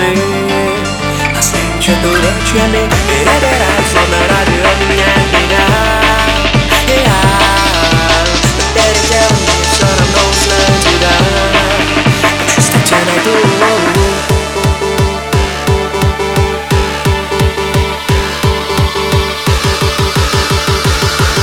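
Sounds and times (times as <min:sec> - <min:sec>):
bayan drum and bass remix: 0:00.1 - 0:21.4.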